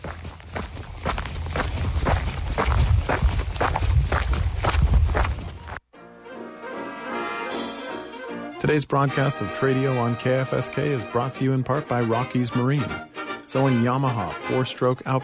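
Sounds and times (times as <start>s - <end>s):
footsteps of people walking: 0.0s - 5.8s
speech: 8.7s - 15.2s.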